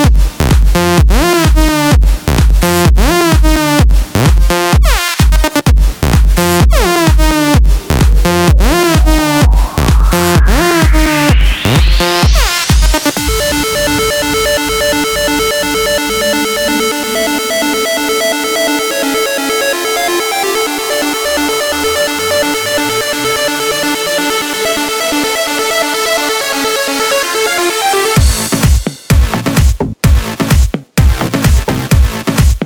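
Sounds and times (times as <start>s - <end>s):
progressive house and electro house music: 0.0s - 32.6s.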